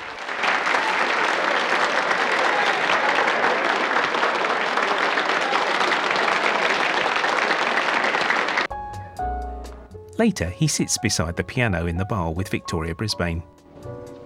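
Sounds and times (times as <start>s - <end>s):
audience giving a standing ovation: 0.0s - 8.7s
speech: 10.2s - 13.6s.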